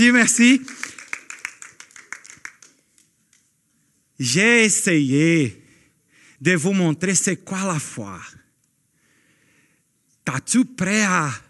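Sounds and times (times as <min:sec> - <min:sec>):
speech: 0:00.0 - 0:01.0, 0:04.2 - 0:05.6, 0:06.4 - 0:08.4, 0:10.3 - 0:11.4
audience applause: 0:00.1 - 0:03.0.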